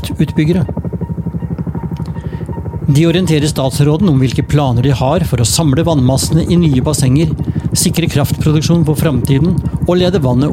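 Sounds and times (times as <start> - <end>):
speech: 0.0 - 0.8, 2.9 - 10.5
helicopter flying over Jotunheimen: 0.0 - 10.5.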